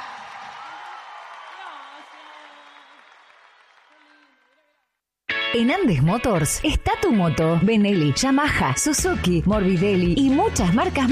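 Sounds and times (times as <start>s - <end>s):
loud applause: 0.0s - 5.0s
speech: 5.5s - 11.0s.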